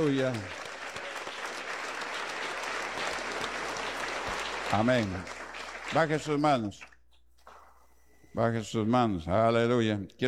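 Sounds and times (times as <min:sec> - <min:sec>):
speech: 0:00.0 - 0:00.6, 0:04.7 - 0:06.9, 0:08.4 - 0:10.2
audience applauding: 0:00.0 - 0:07.8.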